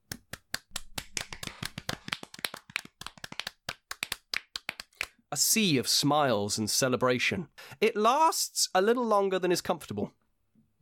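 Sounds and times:
applause from gathered mass of church members: 1.1s - 3.5s
speech: 5.3s - 10.2s.

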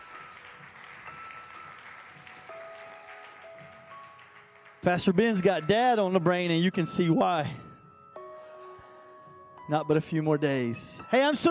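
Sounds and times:
church congregation applauding its graduates and youth leaders: 0.0s - 6.5s
speech: 4.8s - 7.6s, 9.7s - 11.5s.

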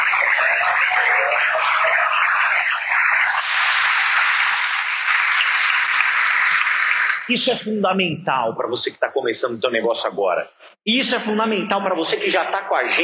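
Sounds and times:
audience applause: 0.0s - 7.3s
speech: 7.3s - 13.0s.

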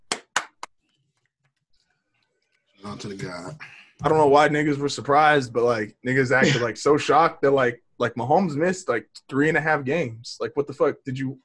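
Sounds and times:
hand clapping applause: 0.0s - 0.7s
speech: 2.9s - 11.4s
laughter: 6.1s - 7.2s.

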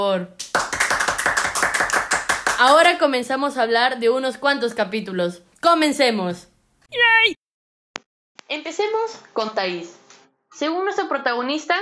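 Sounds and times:
speech: 0.0s - 0.4s, 2.6s - 7.4s, 8.5s - 11.7s
hands clapping: 0.4s - 2.9s.

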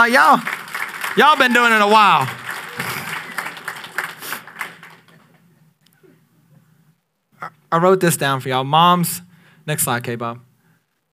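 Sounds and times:
speech: 0.0s - 0.6s, 1.2s - 2.4s, 7.4s - 10.5s
audience applause: 0.0s - 5.5s.

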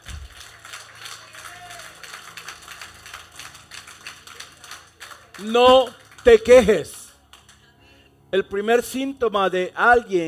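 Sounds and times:
audience applauding: 0.0s - 7.7s
speech: 5.4s - 7.0s, 8.3s - 10.2s.

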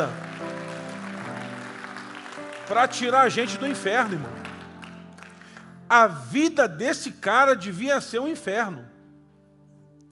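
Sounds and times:
speech: 0.0s - 0.2s, 2.7s - 4.4s, 5.9s - 8.9s
church audience applause: 0.0s - 5.7s.

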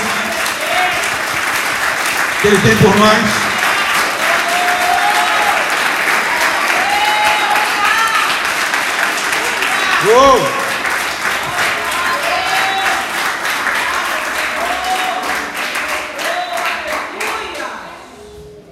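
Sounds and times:
audience applause: 0.0s - 17.8s
speech: 2.4s - 3.5s, 10.0s - 10.6s.

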